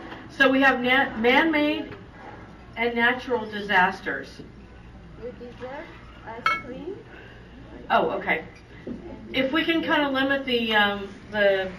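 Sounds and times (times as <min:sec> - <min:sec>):
murmur of people talking: 0:00.0 - 0:11.7
speech: 0:00.4 - 0:02.0, 0:02.8 - 0:04.6, 0:05.2 - 0:07.2, 0:07.8 - 0:11.7
dishes or cutlery clinking: 0:06.4 - 0:06.8.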